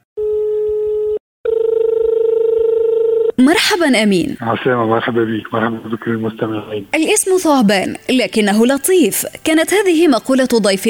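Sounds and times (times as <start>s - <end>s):
telephone ringback buzzes: 0.2s - 3.3s
speech: 3.4s - 10.8s.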